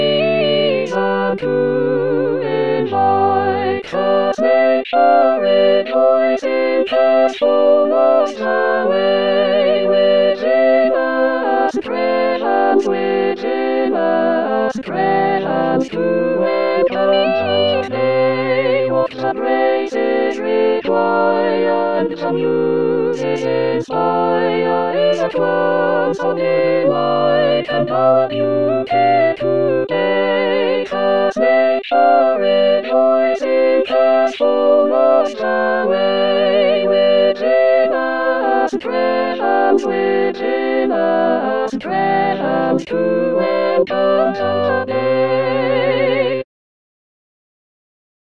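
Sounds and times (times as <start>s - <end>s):
full chorus tutti voices: 0.0s - 46.4s.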